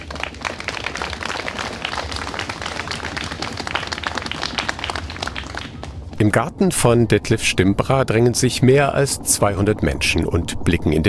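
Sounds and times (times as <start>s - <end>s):
crowd applause: 0.0s - 6.2s
speech: 6.2s - 11.0s.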